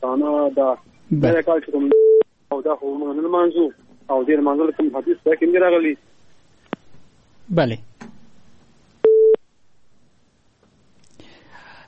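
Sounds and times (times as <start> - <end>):
speech: 0.1 - 6.1, 7.5 - 7.9
soft breathy hiss: 2.4 - 9.0, 10.1 - 11.8
phone busy tone after a radio caller is cut off: 9.0 - 9.4.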